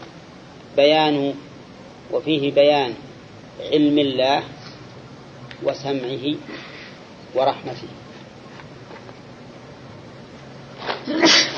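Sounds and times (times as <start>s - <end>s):
quiet hiss: 0.0s - 11.5s
speech: 0.8s - 1.5s, 2.1s - 4.6s, 5.6s - 6.7s, 7.3s - 8.0s
person sneezing: 10.9s - 11.5s.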